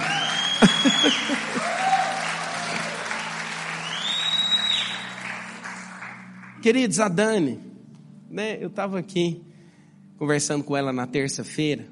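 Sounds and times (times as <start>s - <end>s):
laughter: 0.0s - 2.6s
audience applause: 0.0s - 6.6s
speech: 6.6s - 7.7s, 8.3s - 9.5s, 10.2s - 11.8s.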